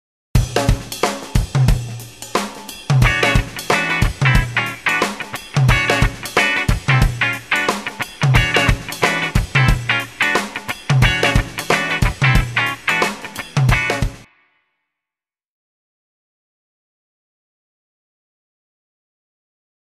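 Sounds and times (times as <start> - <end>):
rhythm guitar: 0.4 - 14.3.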